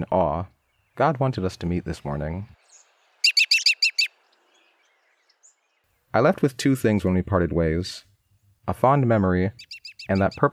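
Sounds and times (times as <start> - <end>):
speech: 0.0 - 2.6, 6.1 - 8.1, 8.7 - 10.5
American robin chirped notes: 2.6 - 5.8, 9.6 - 10.5.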